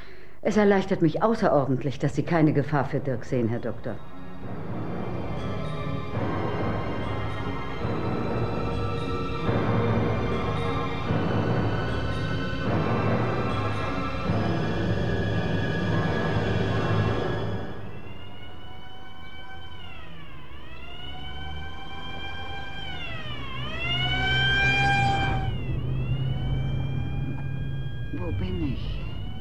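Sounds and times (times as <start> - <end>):
speech: 0.4 - 4.6
ambulance siren wailing: 2.3 - 29.3
moving ambulance rumble: 4.4 - 29.3.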